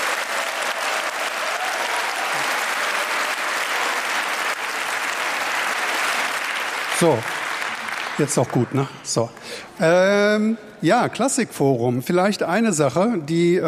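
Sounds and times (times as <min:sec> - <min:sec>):
audience applause: 0:00.0 - 0:09.0
speech: 0:07.0 - 0:07.4, 0:08.2 - 0:13.6.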